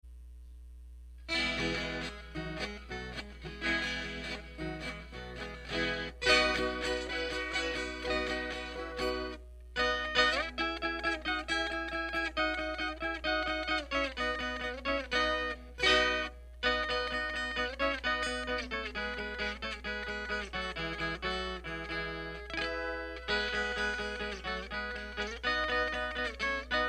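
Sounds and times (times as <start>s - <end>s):
instrumental music: 1.3s - 26.8s.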